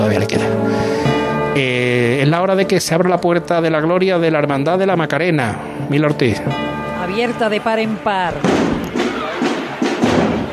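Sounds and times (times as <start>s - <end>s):
speech: 0.2s - 0.8s, 1.6s - 8.8s
drum roll: 7.0s - 10.5s.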